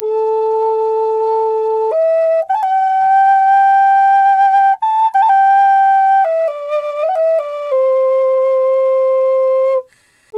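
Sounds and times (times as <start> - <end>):
flute: 0.0 - 10.3.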